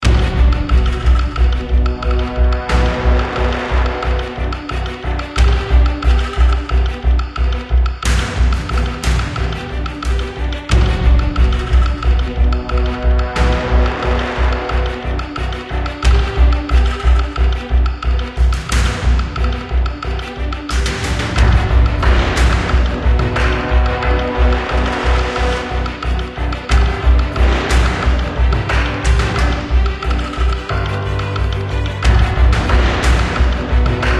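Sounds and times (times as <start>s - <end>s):
game combat music: 0.0s - 34.1s.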